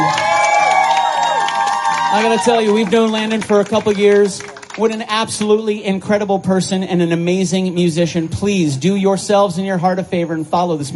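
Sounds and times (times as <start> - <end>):
audience applause: 0.0 - 5.0
speech: 2.2 - 10.9.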